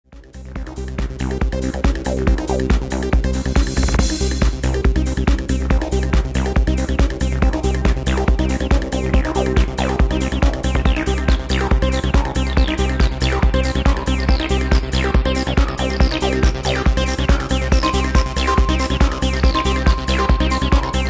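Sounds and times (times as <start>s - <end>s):
trance music: 0.1s - 21.0s.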